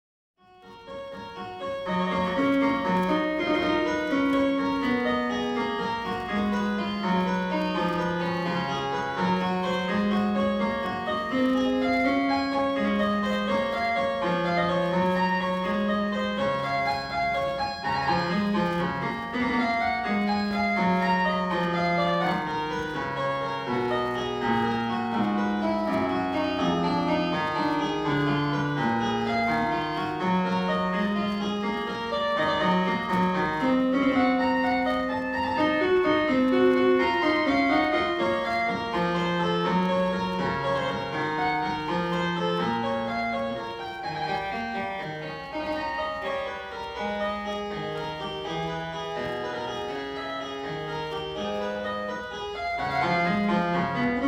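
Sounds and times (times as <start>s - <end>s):
keyboard prelude and fugue: 0.4s - 54.2s.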